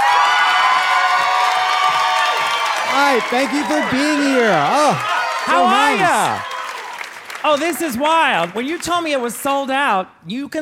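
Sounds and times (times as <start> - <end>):
audience cheering with whoops and shouts: 0.0 - 7.2
audience clapping as a drag comedian walks onstage: 0.0 - 9.5
speech: 3.0 - 6.5, 7.4 - 10.6.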